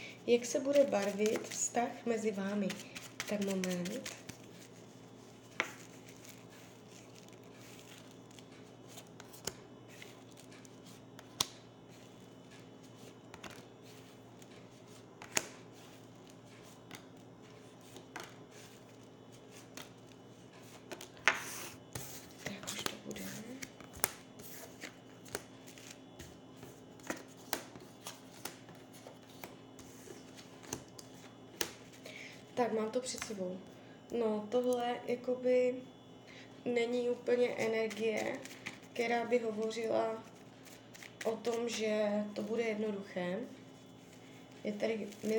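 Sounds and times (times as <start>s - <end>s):
speech: 0.3s - 4.2s, 32.9s - 35.9s, 36.6s - 40.3s, 41.2s - 43.6s, 44.6s - 45.3s
playing cards shuffling: 0.5s - 32.1s, 40.3s - 41.8s.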